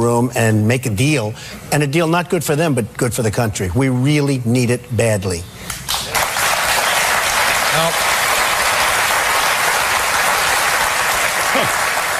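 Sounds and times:
speech: 0.0s - 6.2s
audience applause: 5.9s - 12.1s.

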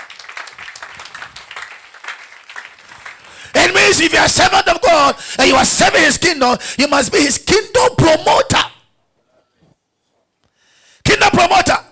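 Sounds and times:
audience clapping: 0.0s - 3.8s
speech: 3.6s - 8.7s.

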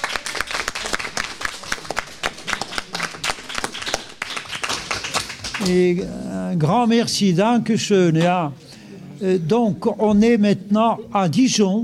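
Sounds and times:
applause: 0.0s - 5.7s
speech: 5.6s - 8.6s, 9.2s - 11.8s.

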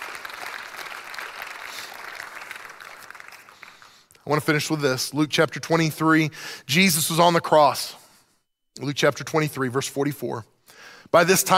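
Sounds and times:
audience applause: 0.0s - 4.0s
speech: 4.3s - 8.0s, 8.8s - 11.5s.

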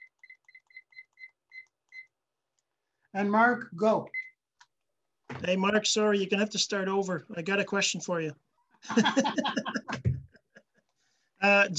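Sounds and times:
electronic timer beeps: 0.0s - 2.2s, 4.1s - 4.4s
speech: 3.1s - 4.2s, 5.4s - 10.1s, 11.4s - 11.7s
laughter: 8.8s - 10.9s.

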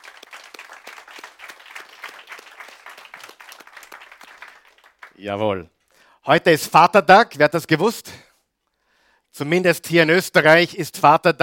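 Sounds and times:
crowd applauding: 0.0s - 5.4s
speech: 5.2s - 8.2s, 9.4s - 11.4s.

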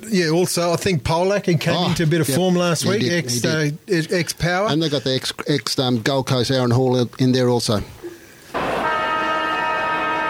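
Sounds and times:
speech: 0.1s - 8.0s
half-time siren at a football match: 8.6s - 10.2s.

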